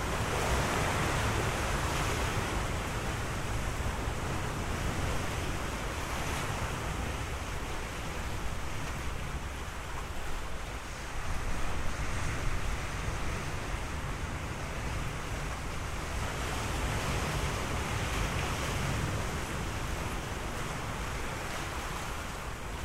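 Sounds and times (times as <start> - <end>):
ocean waves: 0.0 - 22.8.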